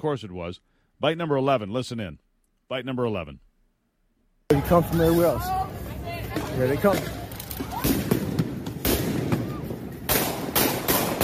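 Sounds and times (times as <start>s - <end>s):
speech: 0.0s - 3.5s, 4.5s - 5.6s, 6.3s - 8.0s
guns fired at police: 6.3s - 11.2s.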